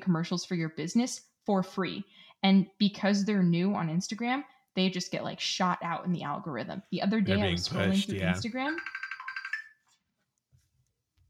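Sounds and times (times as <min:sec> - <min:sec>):
speech: 0:00.0 - 0:09.0
video messenger notification ringtone: 0:08.7 - 0:09.8.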